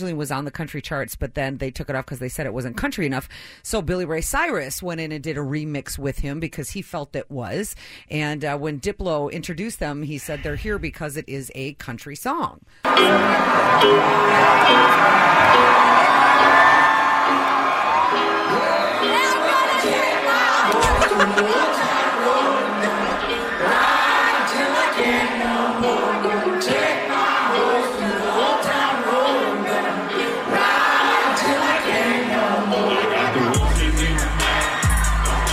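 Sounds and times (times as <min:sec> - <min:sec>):
speech: 0:00.0 - 0:17.6
scattered shouts and laughter: 0:12.9 - 0:24.5, 0:33.6 - 0:35.5
concert music: 0:12.9 - 0:35.5
large concert crowd cheering and singing along: 0:12.9 - 0:35.5.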